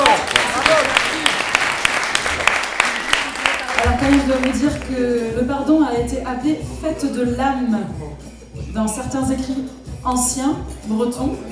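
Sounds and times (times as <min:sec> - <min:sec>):
audience applause: 0:00.0 - 0:04.9
speech: 0:04.1 - 0:11.5.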